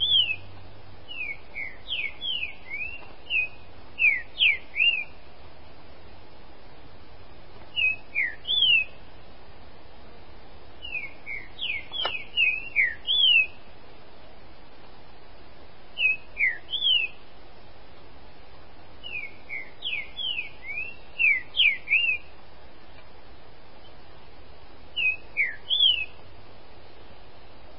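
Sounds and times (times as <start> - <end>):
Green-winged Saltator song of bright whistled notes: 0.0 - 0.5, 1.1 - 5.2, 7.7 - 9.0, 10.8 - 13.7, 16.0 - 17.2, 19.0 - 22.3, 24.9 - 26.2.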